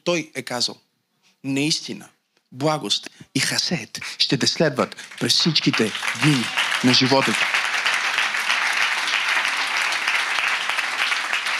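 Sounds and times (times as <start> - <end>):
speech: 0.1 - 7.6
audience applause: 4.8 - 11.5.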